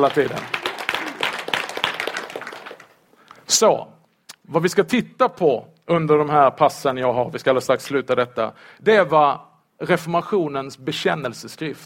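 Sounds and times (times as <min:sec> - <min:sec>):
speech: 0:00.0 - 0:00.6, 0:03.5 - 0:03.9, 0:04.5 - 0:11.8
room full of people applauding: 0:00.0 - 0:03.0.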